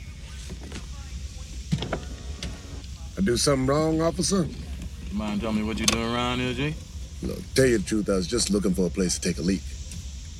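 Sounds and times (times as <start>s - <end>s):
car window rolling down during a police traffic stop: 1.7s - 2.8s
speech: 3.2s - 9.7s.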